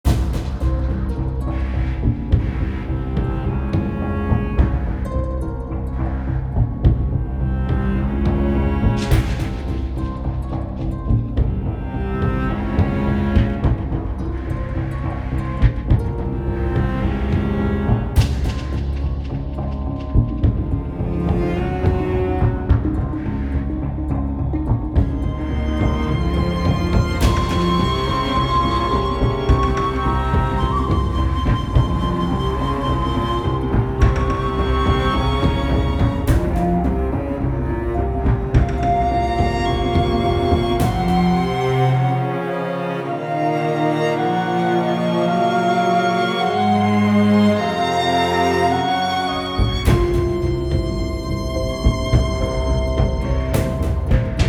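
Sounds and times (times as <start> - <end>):
instrumental music: 0.0 - 54.4.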